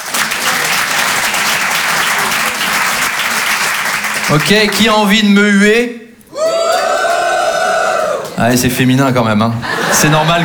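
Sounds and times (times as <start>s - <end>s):
crowd applauding: 0.0s - 5.0s, 6.4s - 8.6s
speech: 4.3s - 6.0s, 8.4s - 10.4s
laughter: 9.5s - 10.4s.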